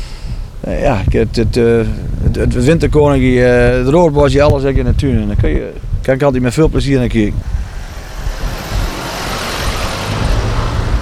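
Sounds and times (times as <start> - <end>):
jeep engine rumbling: 0.5 - 11.0
speech: 0.7 - 7.6
road noise: 5.8 - 11.0.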